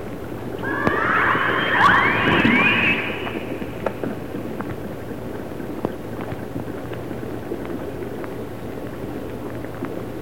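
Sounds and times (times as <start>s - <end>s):
orca call: 0.6s - 4.1s.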